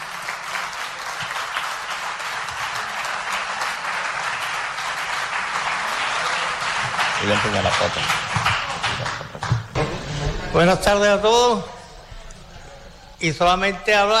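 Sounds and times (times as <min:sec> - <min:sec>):
audience applause welcoming a guest: 0:00.0 - 0:10.2
speech: 0:07.2 - 0:08.3, 0:10.5 - 0:11.8, 0:13.2 - 0:14.1.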